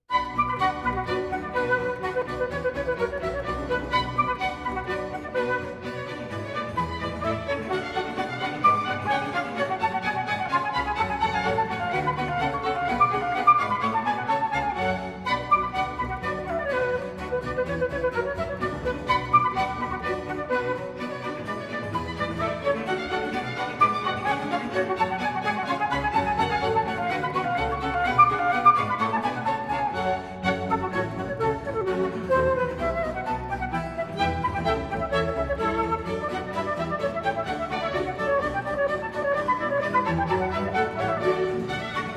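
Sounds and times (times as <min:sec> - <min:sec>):
baroque orchestral suite movement: 0:00.0 - 0:42.1.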